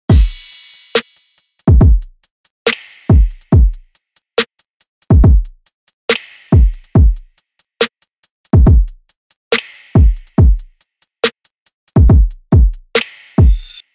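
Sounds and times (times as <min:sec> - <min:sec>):
drums: 0:00.0 - 0:13.8.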